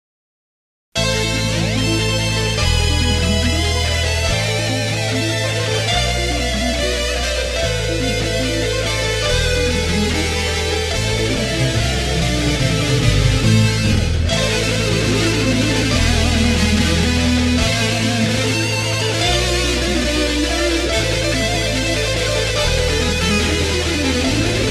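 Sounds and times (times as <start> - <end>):
fugue in A minor: 1.0 - 24.7.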